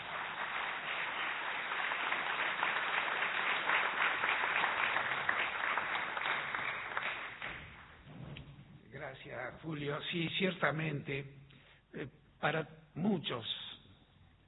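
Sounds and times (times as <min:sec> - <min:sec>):
audience applause: 0:00.0 - 0:08.0
speech: 0:09.4 - 0:13.6.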